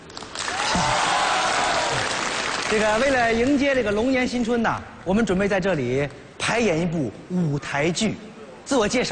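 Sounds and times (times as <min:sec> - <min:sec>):
audience applause at a Lunar New Year show for the Year of the Dragon: 0:00.1 - 0:03.2
speech: 0:02.7 - 0:09.1.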